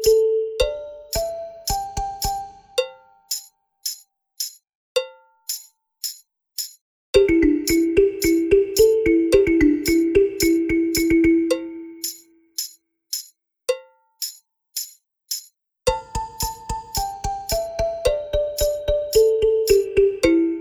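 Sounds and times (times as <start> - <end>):
balafon: 0.0 - 3.1, 7.2 - 12.0, 15.9 - 20.5.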